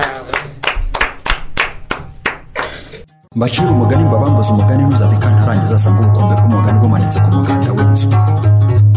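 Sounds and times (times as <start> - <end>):
audience clapping in unison for the children: 0.0 - 2.9
speech: 3.4 - 8.8.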